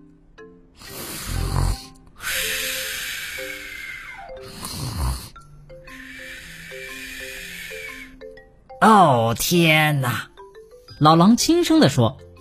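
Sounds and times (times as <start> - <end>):
lamb snoring softly: 0.8 - 2.0, 4.4 - 5.4
speech: 8.9 - 10.3, 11.0 - 12.2.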